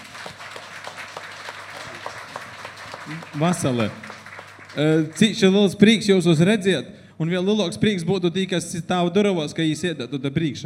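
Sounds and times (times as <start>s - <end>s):
audience applause: 0.0s - 5.6s
speech: 3.1s - 4.0s, 4.8s - 10.6s.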